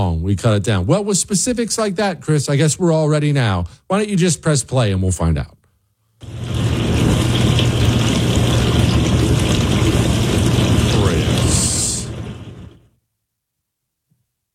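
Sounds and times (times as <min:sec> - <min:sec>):
speech: 0:00.0 - 0:05.6
dishwasher running: 0:06.2 - 0:12.9.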